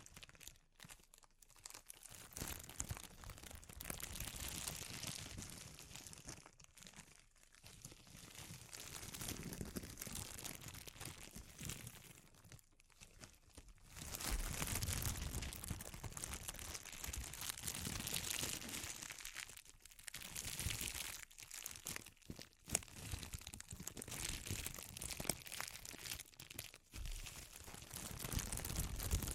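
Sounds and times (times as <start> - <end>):
bright papery crinkling: 0.0 - 29.3.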